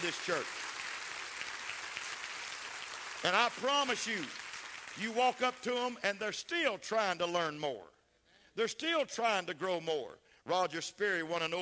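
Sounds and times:
speech: 0.0 - 0.7, 3.2 - 4.4, 5.0 - 8.0, 8.6 - 11.6
audience clapping: 0.0 - 6.0.

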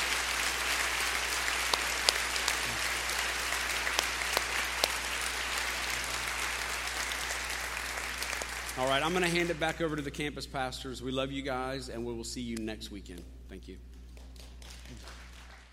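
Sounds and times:
audience applause: 0.0 - 9.7, 14.4 - 15.7
speech: 8.8 - 13.9.

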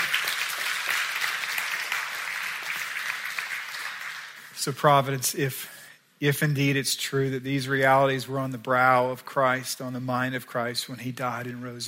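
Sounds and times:
audience applause: 0.0 - 4.6
speech: 4.6 - 11.8.

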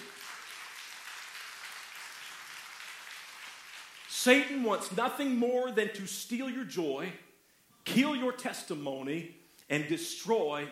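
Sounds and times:
audience clapping: 0.0 - 4.9
speech: 4.2 - 7.3, 7.9 - 10.7.

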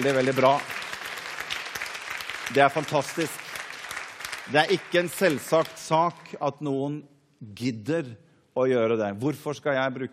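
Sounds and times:
speech: 0.0 - 0.8, 2.5 - 3.4, 4.5 - 10.1
audience applause: 0.0 - 5.9.

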